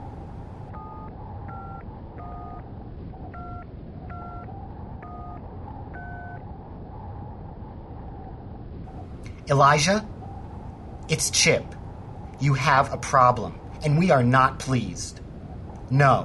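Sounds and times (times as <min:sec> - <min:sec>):
low rumbling hum: 0:00.0 - 0:16.2
telephone number dialed in touch-tone beeps: 0:00.8 - 0:02.6, 0:03.4 - 0:06.4
speech: 0:09.5 - 0:10.1, 0:11.1 - 0:11.8, 0:12.4 - 0:15.2, 0:15.9 - 0:16.2.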